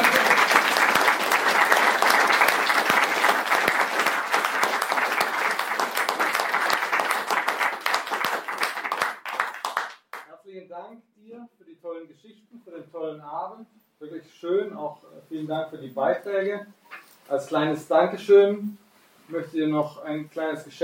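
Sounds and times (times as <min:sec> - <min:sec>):
sustained audience applause: 0:00.0 - 0:10.2
speech: 0:15.5 - 0:20.8.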